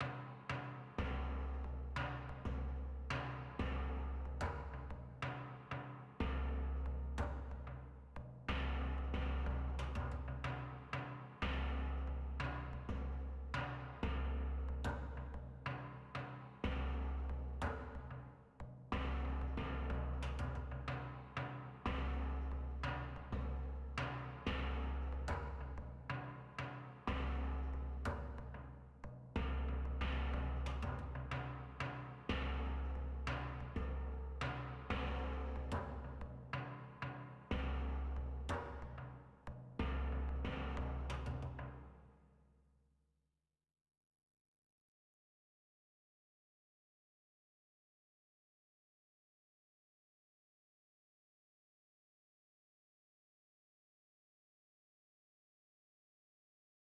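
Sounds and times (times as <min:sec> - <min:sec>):
oil drum: 0:00.0 - 0:18.2, 0:18.9 - 0:41.9.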